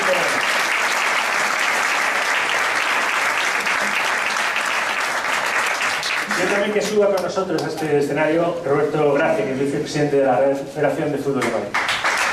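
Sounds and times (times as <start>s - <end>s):
audience applause: 0.0s - 7.7s, 11.7s - 12.3s
speech: 6.4s - 11.9s.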